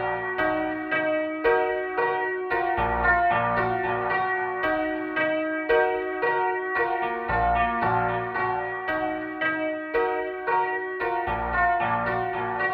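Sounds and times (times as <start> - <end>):
processed piano: 0.0 - 12.7.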